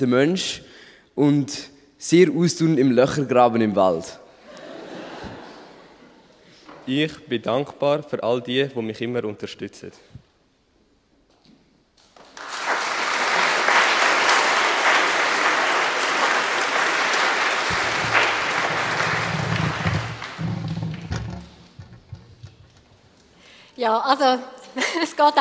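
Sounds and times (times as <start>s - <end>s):
speech: 0.0s - 4.2s, 6.9s - 10.1s, 23.8s - 25.4s
laughter: 4.4s - 6.4s
audience applause: 12.2s - 21.7s.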